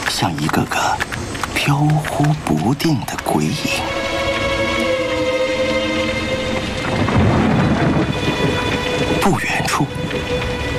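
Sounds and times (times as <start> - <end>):
heavy wind and rainstorm: 0.0 - 10.7
speech: 0.2 - 4.0, 9.3 - 10.6
thunder: 6.4 - 9.3.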